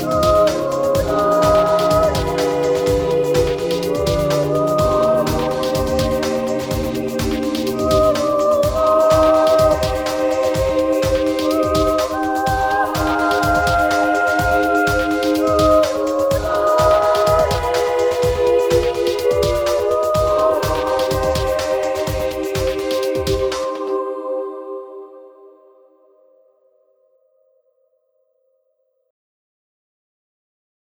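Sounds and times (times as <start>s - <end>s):
remix track: 0.0s - 24.0s.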